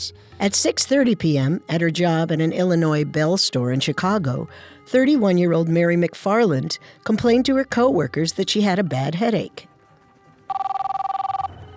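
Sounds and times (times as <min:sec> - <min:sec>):
speech: 0:00.0 - 0:09.7
office telephone ringing: 0:10.5 - 0:11.7.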